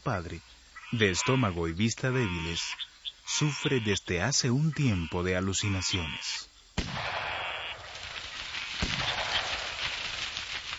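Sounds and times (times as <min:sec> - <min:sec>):
speech: 0:00.0 - 0:06.5
shotgun shot: 0:06.8 - 0:07.9, 0:08.8 - 0:09.9.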